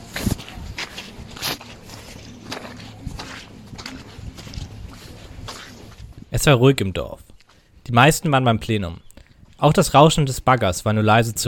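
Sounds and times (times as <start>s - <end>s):
footsteps sinking into mud on a village square: 0.0s - 6.4s, 7.2s - 7.8s
speech: 6.4s - 7.3s, 7.9s - 9.0s, 9.6s - 11.4s.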